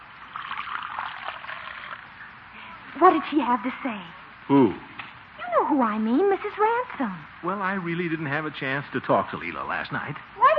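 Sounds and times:
coffee poured into a cup: 0.0s - 2.1s
speech: 3.0s - 4.9s, 5.7s - 10.5s.

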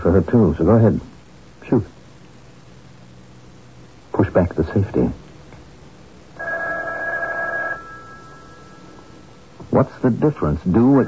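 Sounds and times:
speech: 0.0s - 1.1s, 1.7s - 2.0s, 4.2s - 5.2s, 9.7s - 11.0s
telephone bell ringing: 6.4s - 9.4s, 10.8s - 11.0s.

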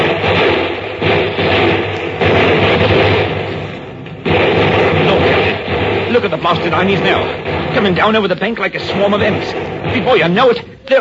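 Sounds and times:
gunfire in a radio drama battle scene: 0.0s - 10.9s
speech: 6.6s - 10.9s.

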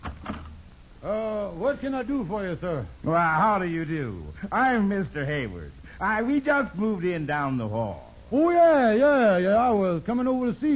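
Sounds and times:
door opening: 0.0s - 0.6s
speech: 1.0s - 10.7s.

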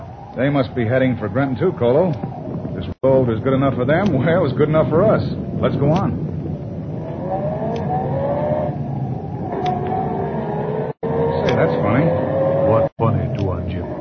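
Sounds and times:
speech: 0.4s - 6.2s
car engine droning while driving along a road: 6.4s - 13.9s.

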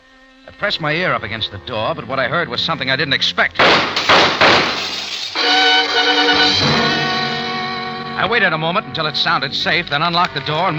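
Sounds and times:
speech: 0.5s - 4.9s, 6.1s - 7.0s, 8.2s - 10.7s
gunshots: 3.6s - 7.1s
window glass shattering from gunshots: 3.6s - 7.8s.

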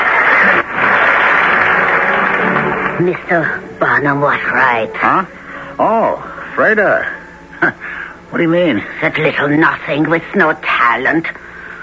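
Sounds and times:
audience applause: 0.0s - 3.8s
speech: 3.0s - 11.4s.

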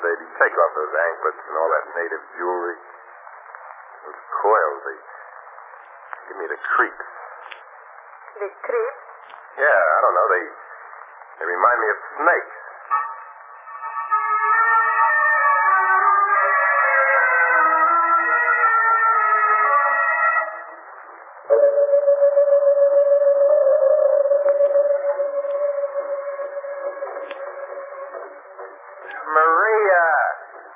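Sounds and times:
speech: 0.4s - 3.0s, 4.0s - 5.2s, 6.3s - 7.2s, 8.4s - 9.0s, 9.6s - 10.6s, 11.4s - 12.6s
music record playing: 12.9s - 30.7s.

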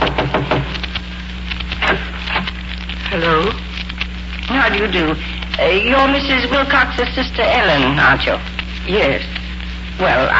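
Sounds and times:
knocking on a door: 0.0s - 0.8s
steady low hum: 0.0s - 10.3s
speech: 4.8s - 9.4s, 10.0s - 10.3s.

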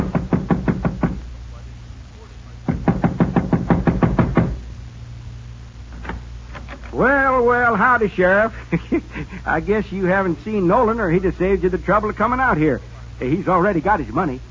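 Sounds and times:
knocking on a front door: 0.0s - 1.2s, 2.7s - 4.6s
low hum: 0.0s - 14.4s
speech: 7.0s - 14.4s
laughter: 7.7s - 11.4s.

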